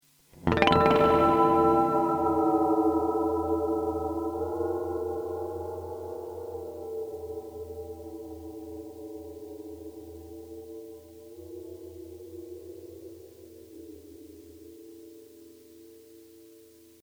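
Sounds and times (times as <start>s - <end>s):
EarthQuaker Devices Ghost Echo V3 reverb oscillation: 0.5s - 9.0s.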